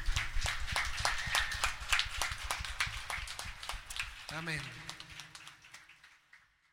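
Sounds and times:
audience applauding: 0.0s - 6.7s
speech: 4.3s - 4.8s.

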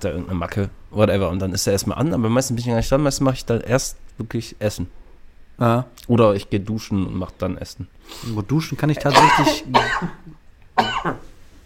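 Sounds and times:
speech: 0.0s - 5.0s, 5.6s - 11.3s
sneeze: 9.1s - 10.2s.

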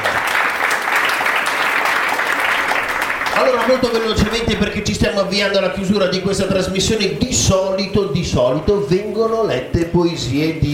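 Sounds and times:
crowd applauding: 0.0s - 5.0s
speech: 3.7s - 10.7s.

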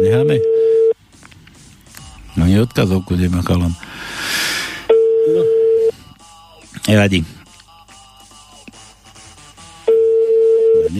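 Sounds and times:
speech: 0.0s - 0.6s, 2.5s - 4.2s, 6.9s - 7.4s
telephone ringing tone of an unanswered call: 0.0s - 1.0s, 4.9s - 6.0s, 9.8s - 10.9s.

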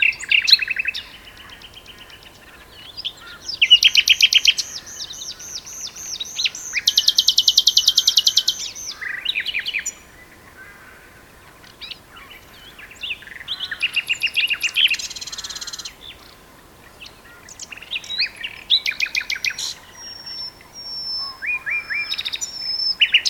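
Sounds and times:
common nightingale song: 0.0s - 23.2s.

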